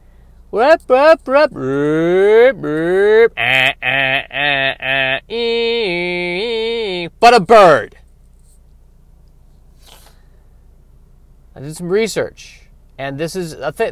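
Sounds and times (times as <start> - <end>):
speech: 0.5 - 3.7, 7.2 - 8.0, 11.6 - 13.9
voice imitating an alternating car alarm: 0.6 - 7.2.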